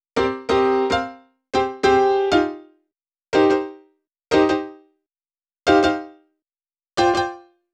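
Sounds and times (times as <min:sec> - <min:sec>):
cinematic funk piano solo: 0:00.2 - 0:02.7, 0:03.4 - 0:04.8, 0:05.7 - 0:06.2, 0:07.0 - 0:07.5.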